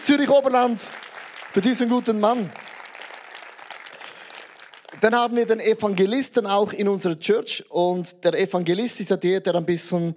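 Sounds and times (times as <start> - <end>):
speech: 0.0 - 2.7, 5.0 - 10.1
crowd applause: 0.0 - 5.3.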